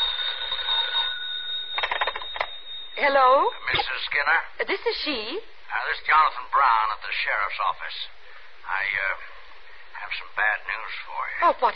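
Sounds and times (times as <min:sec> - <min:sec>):
telephone ringing with an electronic trill: 0:00.0 - 0:04.1
speech: 0:03.0 - 0:09.3, 0:10.1 - 0:11.7.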